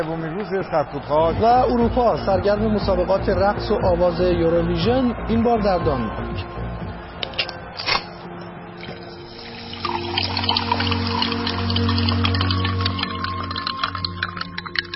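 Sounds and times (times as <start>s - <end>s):
speech: 0.0s - 6.6s
soda drink opening clicks: 7.2s - 8.1s
soda drink fizzing gurgling pour in a studio: 8.8s - 14.9s.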